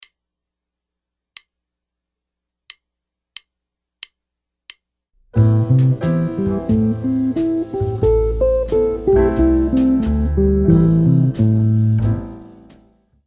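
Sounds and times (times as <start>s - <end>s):
guitar arpeggios: 5.7s - 11.3s.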